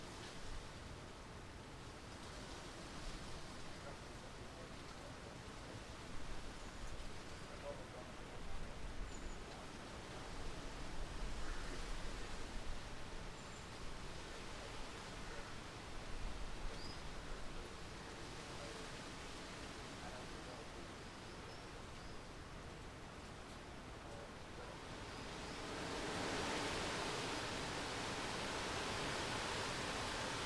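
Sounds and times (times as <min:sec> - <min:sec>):
wind rustling through orchard trees: 0:00.0 - 0:30.4
faint voices: 0:03.4 - 0:06.4, 0:07.0 - 0:10.8, 0:16.7 - 0:22.0, 0:23.8 - 0:25.1.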